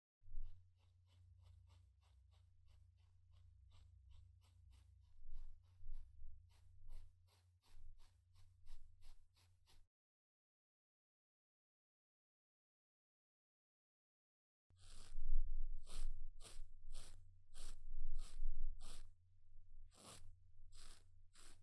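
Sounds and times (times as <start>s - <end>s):
razor shaving face and facial fuzz: 0.3s - 9.9s, 14.8s - 19.1s, 19.8s - 21.6s.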